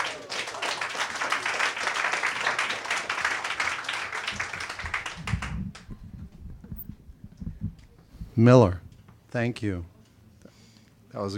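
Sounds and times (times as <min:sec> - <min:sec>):
audience applause: 0:00.0 - 0:06.3
speech: 0:08.4 - 0:09.9, 0:11.2 - 0:11.3.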